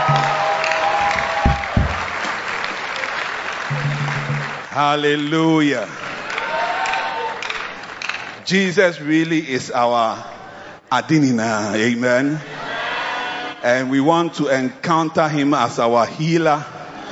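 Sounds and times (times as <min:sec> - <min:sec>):
audience clapping: 0:00.0 - 0:08.5
speech: 0:04.8 - 0:06.0, 0:08.5 - 0:10.3, 0:10.9 - 0:12.5, 0:13.6 - 0:16.7.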